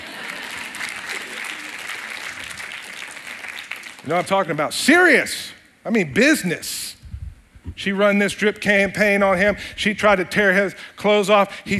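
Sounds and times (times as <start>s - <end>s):
audience applause: 0.0s - 4.1s
speech: 4.0s - 7.0s, 7.8s - 11.7s.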